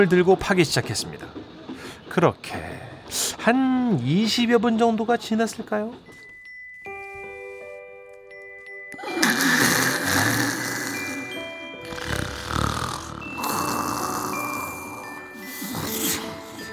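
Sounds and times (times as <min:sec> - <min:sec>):
speech: 0:00.0 - 0:06.2
woman snoring: 0:09.0 - 0:16.7.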